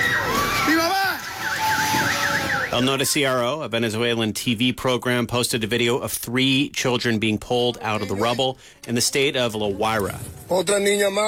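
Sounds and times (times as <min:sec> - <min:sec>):
people screaming during earthquake: 0:00.0 - 0:03.2
speech: 0:02.8 - 0:11.2.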